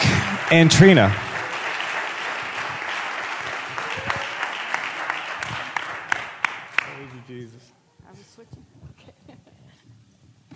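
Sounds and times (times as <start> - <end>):
audience applause: 0.0 - 7.3
speech: 0.5 - 1.2.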